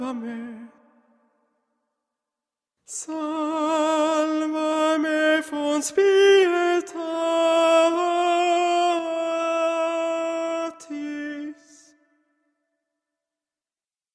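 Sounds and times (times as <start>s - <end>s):
tenor singing: 0.0s - 1.2s, 2.9s - 12.0s.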